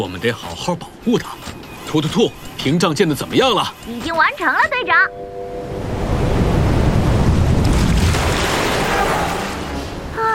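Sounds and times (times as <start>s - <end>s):
speech: 0.0s - 5.4s
ocean waves crashing on an atoll: 5.5s - 10.2s.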